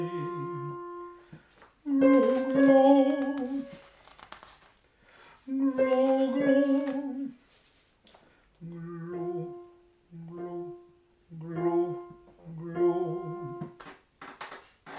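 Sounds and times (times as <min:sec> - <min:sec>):
soprano singing: 0:00.0 - 0:01.2, 0:01.8 - 0:04.0, 0:05.5 - 0:07.4, 0:08.6 - 0:13.7.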